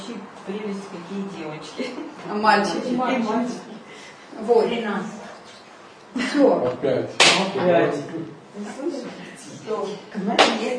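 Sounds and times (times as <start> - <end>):
speech: 0.5 - 3.7, 4.4 - 5.2, 6.4 - 10.7
hands slapping on legs: 7.2 - 7.5.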